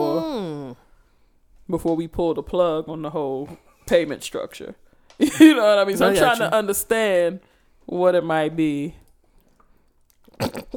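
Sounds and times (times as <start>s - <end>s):
speech: 1.7s - 9.0s, 10.4s - 10.7s
person taking a quick drink of water: 9.4s - 10.7s
soft mouth noises: 10.2s - 10.7s.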